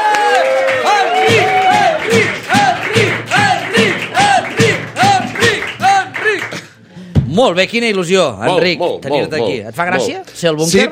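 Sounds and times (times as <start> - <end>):
crowd cheering and shouting: 0.0 - 6.5
audience applause: 0.0 - 6.8
speech: 7.4 - 10.9.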